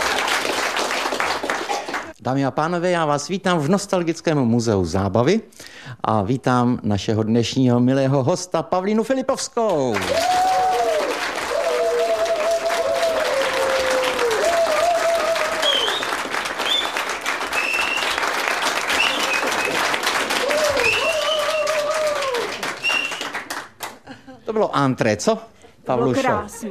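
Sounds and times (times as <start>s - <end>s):
entertainment show audience clapping: 0.0s - 2.2s, 9.7s - 24.3s
speech: 2.2s - 10.5s, 24.8s - 26.6s
audience whistle-like hoots: 15.6s - 17.0s, 22.8s - 23.3s.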